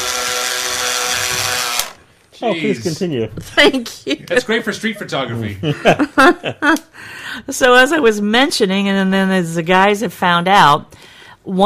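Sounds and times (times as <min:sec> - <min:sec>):
model helicopter flying around the studio: 0:00.0 - 0:02.0
speech: 0:02.4 - 0:11.6
laughter: 0:03.5 - 0:06.9.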